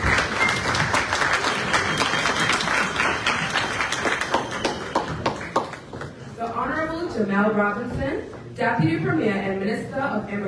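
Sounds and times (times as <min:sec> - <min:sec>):
audience applause at an official ceremony: 0:00.0 - 0:06.2
speech: 0:07.2 - 0:10.4.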